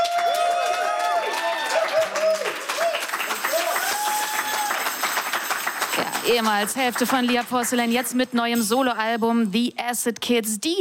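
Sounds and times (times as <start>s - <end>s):
cheering and whoops: 0.0s - 5.2s
audience applause: 0.0s - 7.8s
speech: 6.0s - 10.7s.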